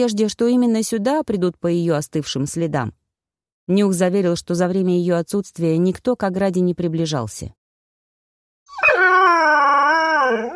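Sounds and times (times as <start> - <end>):
speech: 0.0 - 3.0, 3.7 - 7.6
howling: 8.7 - 10.5.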